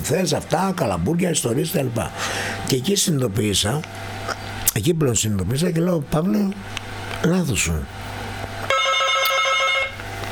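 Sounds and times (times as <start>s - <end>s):
low hum: 0.0s - 10.2s
speech: 0.1s - 8.0s
telephone ringing with electronic trill: 8.7s - 10.0s.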